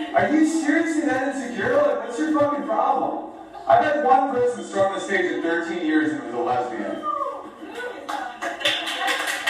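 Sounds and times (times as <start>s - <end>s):
speech: 0.1s - 7.1s
comedy club audience applauding a joke: 7.7s - 9.4s.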